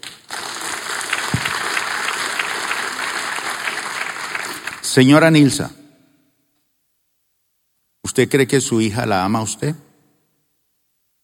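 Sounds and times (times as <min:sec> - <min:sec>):
audience applause: 0:00.0 - 0:05.2
speech: 0:05.0 - 0:05.8, 0:08.2 - 0:09.9.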